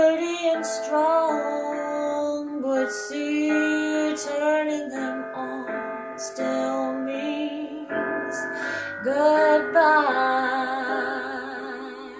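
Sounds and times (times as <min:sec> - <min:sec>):
person singing an English song: 0:00.0 - 0:12.1.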